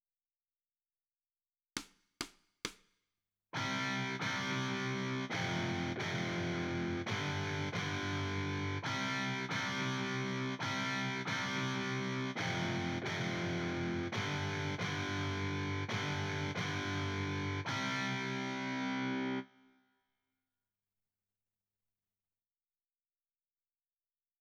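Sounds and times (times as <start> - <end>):
guitar: 3.6 - 19.7.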